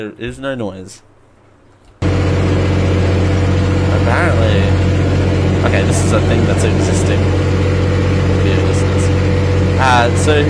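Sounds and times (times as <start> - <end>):
speech: 0.0 - 1.1, 4.0 - 4.9, 5.6 - 7.5, 9.8 - 10.4
faint high whine: 2.0 - 10.4
tractor engine rumbling while driving: 2.0 - 10.4.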